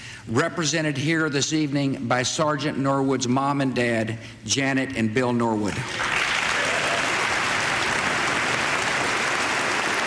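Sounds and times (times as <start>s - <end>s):
speech: 0.2s - 6.2s
audience applause: 5.9s - 10.0s.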